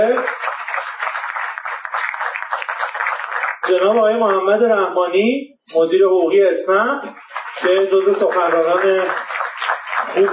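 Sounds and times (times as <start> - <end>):
audience applauding: 0.0 - 4.0, 7.0 - 10.3
speech: 3.7 - 9.3, 10.1 - 10.3.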